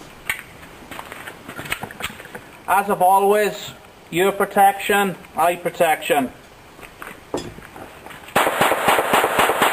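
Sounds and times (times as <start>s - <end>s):
speech: 2.7s - 6.4s
unsuppressed gunshots: 8.4s - 9.7s.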